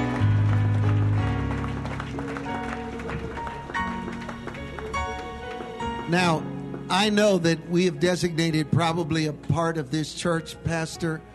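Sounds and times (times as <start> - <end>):
audience clapping: 0.0 - 8.1
speech: 6.1 - 11.3.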